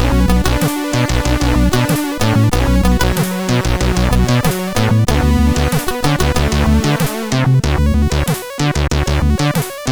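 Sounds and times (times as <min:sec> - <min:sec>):
SID CSG8580R5 chip music: 0:00.0 - 0:09.8.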